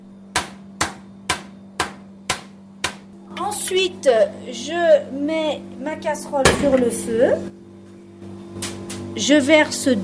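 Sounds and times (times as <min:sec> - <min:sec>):
knife chopping an onion on a board: 0:00.3 - 0:03.1
speech: 0:03.4 - 0:07.6, 0:09.2 - 0:10.0.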